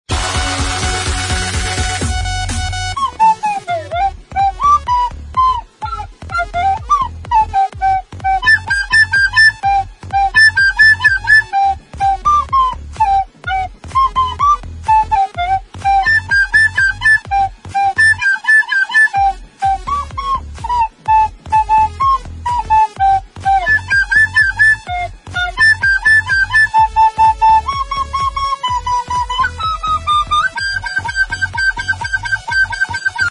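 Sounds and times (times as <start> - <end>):
flute: 0.1 - 33.2.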